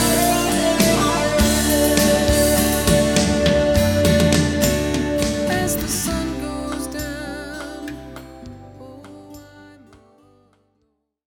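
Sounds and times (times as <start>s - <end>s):
guitar solo: 0.0s - 8.4s.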